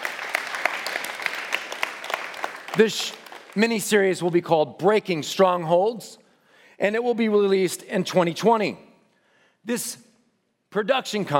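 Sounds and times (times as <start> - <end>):
audience clapping: 0.0 - 4.4
speech: 2.8 - 6.2, 6.8 - 8.9, 9.6 - 10.1, 10.7 - 11.3.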